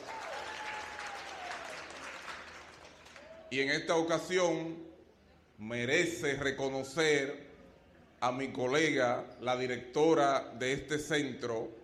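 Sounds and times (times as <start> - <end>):
crowd applause: 0.0 - 3.4
speech: 3.5 - 5.0, 5.6 - 7.5, 8.2 - 11.8.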